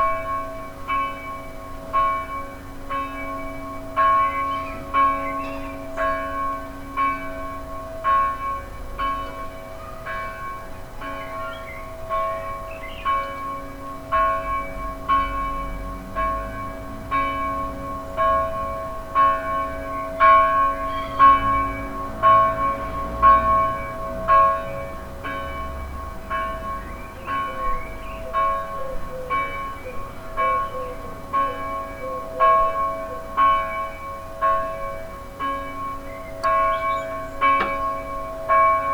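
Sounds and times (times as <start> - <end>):
church bells ringing: 0.0 - 38.9
birds: 3.0 - 6.4, 11.0 - 13.6, 20.8 - 21.5, 26.5 - 33.3, 35.9 - 38.2.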